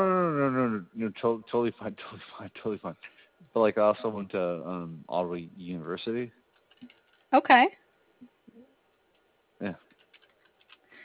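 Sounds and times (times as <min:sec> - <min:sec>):
speech: 0:01.1 - 0:08.3, 0:09.6 - 0:09.8
typing on a keyboard: 0:09.9 - 0:10.8.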